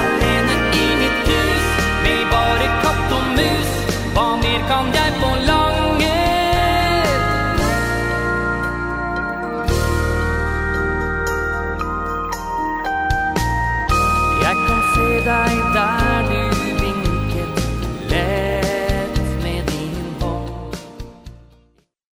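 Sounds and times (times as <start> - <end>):
alternate steel guitar mix: 0.0 - 21.7.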